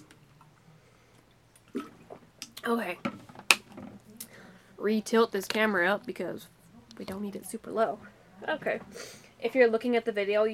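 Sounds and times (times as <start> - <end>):
person drinking water: 1.2 - 2.6
speech: 2.6 - 3.2, 4.8 - 10.5.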